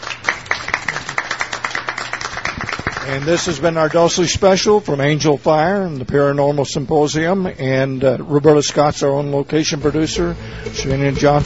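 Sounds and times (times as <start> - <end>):
small audience applause: 0.0 - 3.5
speech: 3.1 - 11.4.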